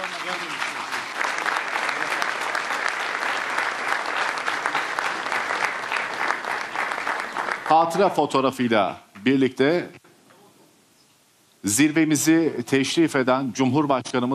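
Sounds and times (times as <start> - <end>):
audience applause at a justice and law summit in Istanbul: 0.0 - 8.2
speech: 7.7 - 10.0, 11.6 - 14.3.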